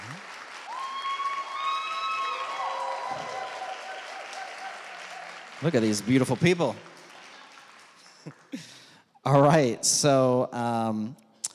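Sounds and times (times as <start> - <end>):
audience clapping and cheering: 0.0 - 9.0
speech: 5.6 - 6.9, 9.2 - 11.2.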